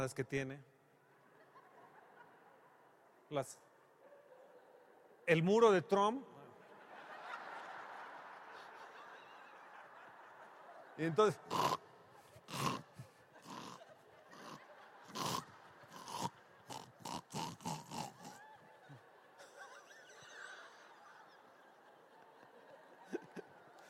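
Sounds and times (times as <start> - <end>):
speech: 0.0 - 0.7, 3.3 - 3.7, 5.3 - 6.3, 11.0 - 11.8
laughter: 1.2 - 3.1, 6.5 - 23.8
person imitating snoring: 11.4 - 11.8, 12.4 - 18.5.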